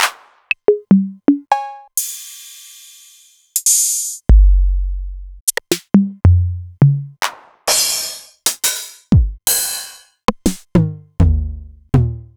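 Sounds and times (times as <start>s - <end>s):
Novation Drumstation drum machine: 0.0s - 12.2s.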